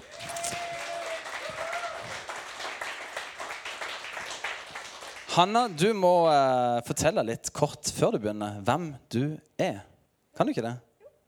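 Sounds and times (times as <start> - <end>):
audience applause: 0.0 - 6.0
speech: 5.4 - 10.9.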